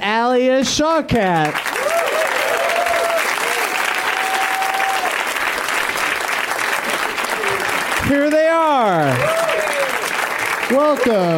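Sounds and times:
speech: 0.4s - 1.7s, 8.1s - 9.4s, 10.7s - 11.3s
audience applause welcoming guests on a comedy show: 1.4s - 11.3s.

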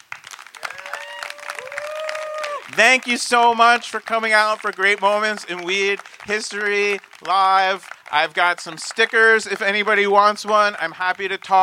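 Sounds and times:
audience clapping: 0.0s - 11.6s
cheering whoop: 0.5s - 2.7s
speech: 2.7s - 11.6s.

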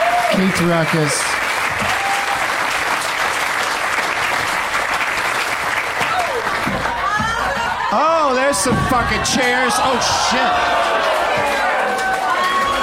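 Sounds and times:
faint voices and whoops: 0.0s - 0.4s, 1.8s - 2.6s, 6.0s - 12.8s
audience applause: 0.0s - 12.8s
speech: 0.3s - 1.4s, 7.9s - 11.7s.

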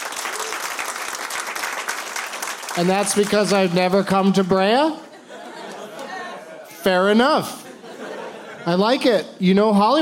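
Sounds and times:
audience applause from a crowd at a live comedy taping: 0.0s - 3.8s
speech: 2.8s - 5.0s, 6.8s - 7.6s, 8.6s - 9.9s
laughter: 4.7s - 9.2s.

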